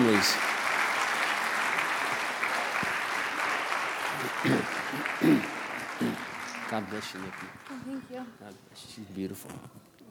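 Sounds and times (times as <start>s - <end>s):
audience applause: 0.0s - 8.0s
speech: 0.2s - 0.5s, 6.7s - 9.8s.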